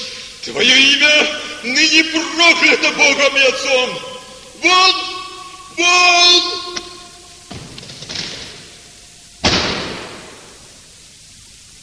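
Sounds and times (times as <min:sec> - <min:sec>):
speech: 0:00.4 - 0:05.1, 0:05.8 - 0:06.9
heavy bronze door slamming shut: 0:07.5 - 0:08.7, 0:09.4 - 0:10.4.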